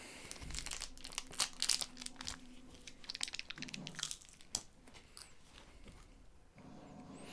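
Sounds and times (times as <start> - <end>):
dried beef meat stick snapping: 0.2 - 5.4.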